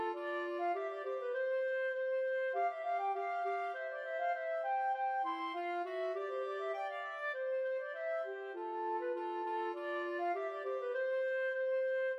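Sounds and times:
clarinet: 0.0 - 12.1
flute: 0.0 - 12.1.

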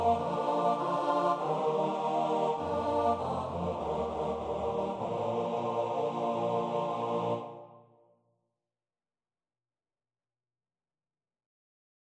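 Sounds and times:
barbershop quartet singing: 0.0 - 7.7.

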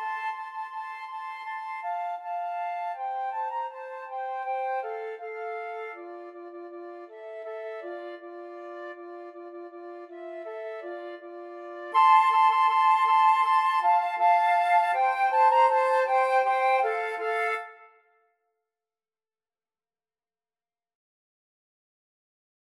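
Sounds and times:
flute duet: 0.0 - 18.1.

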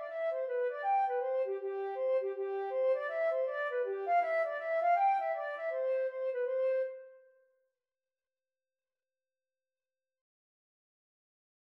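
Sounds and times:
flute: 0.0 - 7.4.

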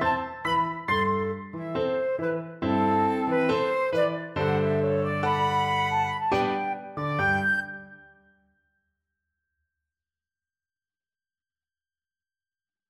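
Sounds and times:
habanera flute and clarinet duet: 0.0 - 8.1.

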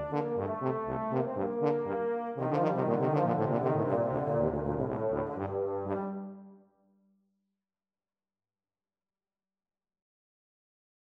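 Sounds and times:
tuba duet: 0.0 - 6.6.

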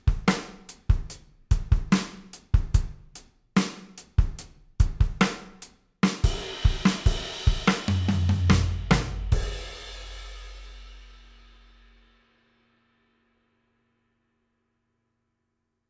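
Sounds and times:
drums: 0.0 - 12.7.

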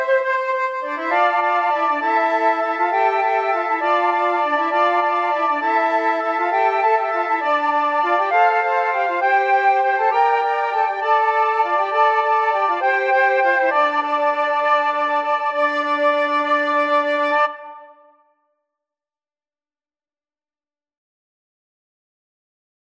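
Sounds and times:
flute choir: 0.0 - 18.3.

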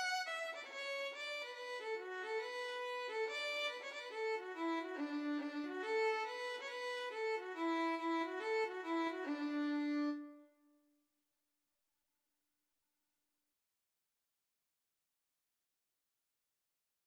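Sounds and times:
violin: 0.0 - 10.5.

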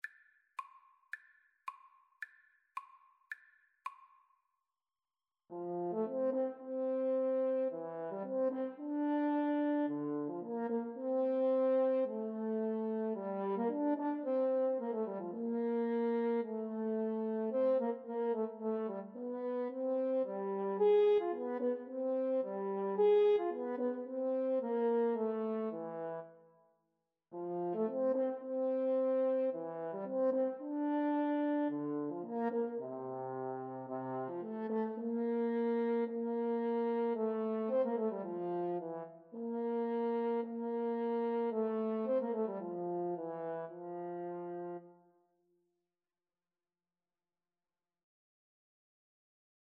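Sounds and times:
french horn duet: 5.5 - 26.4, 27.3 - 45.0.

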